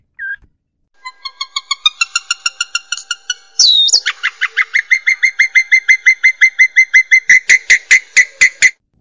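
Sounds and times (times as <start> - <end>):
Asian pied starling song: 0.9 - 8.7.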